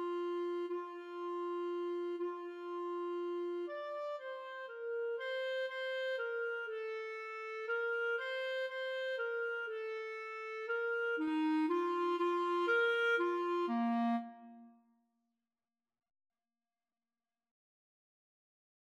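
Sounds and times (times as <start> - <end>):
clarinet duet playing a minuet: 0.0 - 14.6.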